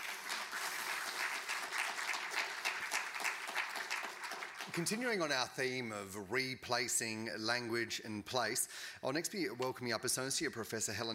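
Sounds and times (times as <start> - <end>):
audience applause at an academic talk: 0.0 - 5.1
speech: 4.7 - 11.1.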